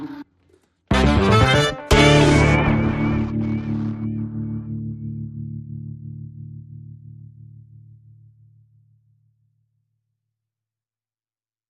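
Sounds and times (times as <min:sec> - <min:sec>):
funk music: 0:00.9 - 0:04.7.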